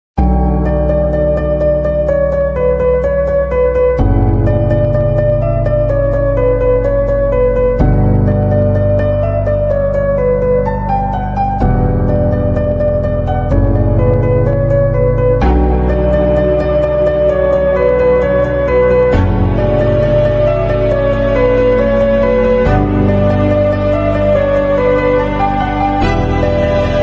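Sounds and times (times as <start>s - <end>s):
slowed hardstyle remix of a chastushka: 0.2s - 27.0s.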